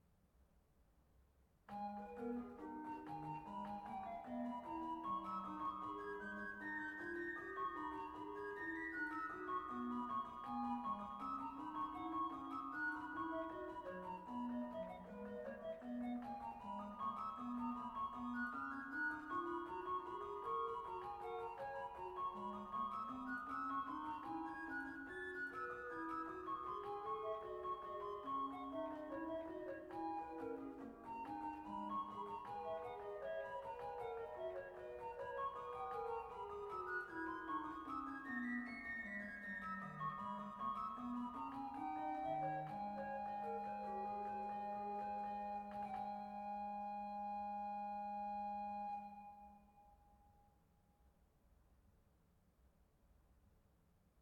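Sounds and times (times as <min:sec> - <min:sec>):
organ piece: 0:01.7 - 0:49.6.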